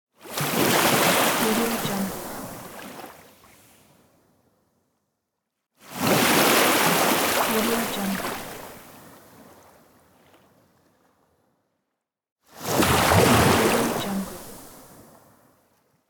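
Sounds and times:
sea waves: 0.2s - 4.0s, 5.8s - 11.4s, 12.6s - 15.9s.

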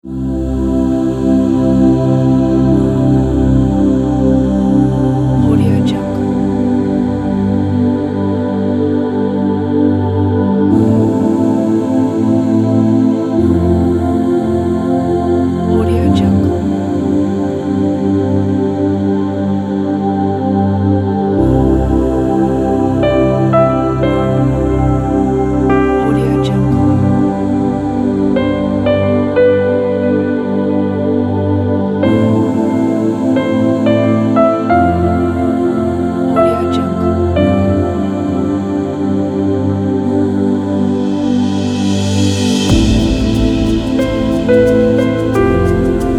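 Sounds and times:
meditation music: 0.0s - 46.1s.

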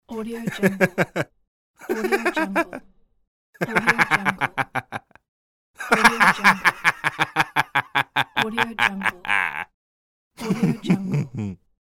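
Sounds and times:
man laughing: 0.6s - 2.7s, 3.6s - 5.2s, 5.8s - 9.7s, 10.4s - 11.6s.

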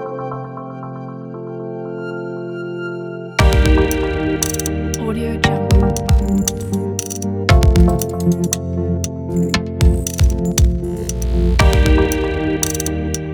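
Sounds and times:
mechanism noise: 3.4s - 5.0s, 5.7s - 13.0s.

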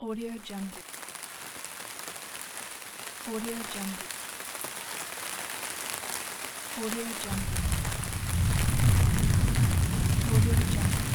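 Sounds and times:
rain: 0.0s - 11.1s
rumble: 7.3s - 11.1s.

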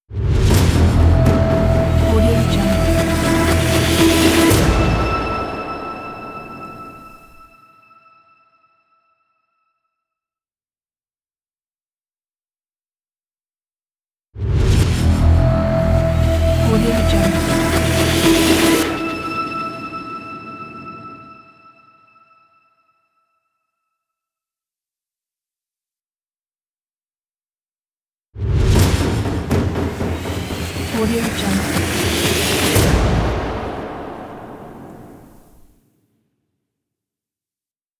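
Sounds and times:
cinematic audio logo: 0.1s - 7.5s, 14.4s - 22.0s, 28.5s - 35.7s.

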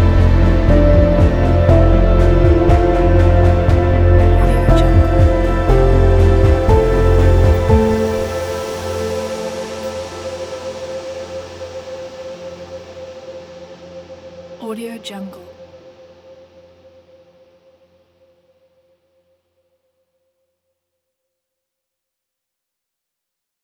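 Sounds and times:
dark cinematic piano: 0.0s - 13.1s.

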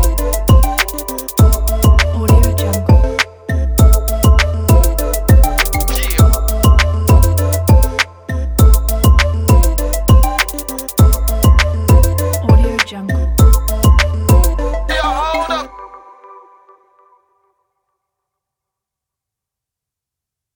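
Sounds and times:
hip hop 808 beat: 0.0s - 15.8s.

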